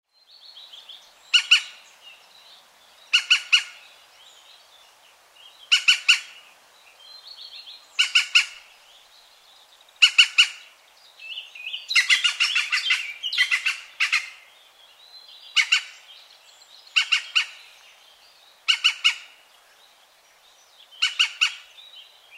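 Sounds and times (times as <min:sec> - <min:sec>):
European green woodpecker calling: 0:01.3 - 0:01.8, 0:03.1 - 0:03.8, 0:05.7 - 0:06.4, 0:08.0 - 0:08.7, 0:10.0 - 0:10.7, 0:11.9 - 0:14.4, 0:15.5 - 0:16.1, 0:16.9 - 0:17.6, 0:18.6 - 0:19.4, 0:21.0 - 0:21.7.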